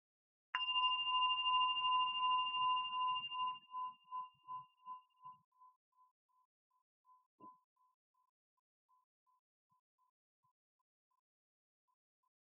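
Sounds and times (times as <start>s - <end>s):
meditation bell ringing: 0.6s - 5.0s.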